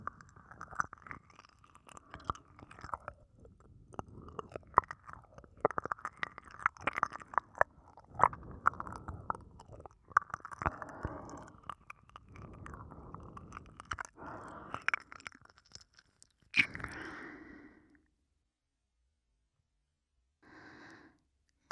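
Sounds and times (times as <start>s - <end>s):
ear licking: 0.0s - 17.3s.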